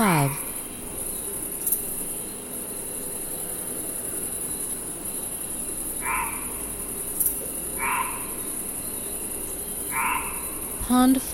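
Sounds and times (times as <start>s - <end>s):
insects trilling: 0.0s - 11.3s
low chirps: 0.0s - 11.3s
low hiss: 0.0s - 11.3s.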